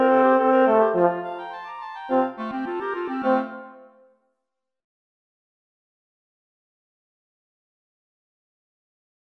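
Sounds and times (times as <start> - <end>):
horn: 0.0 - 4.1.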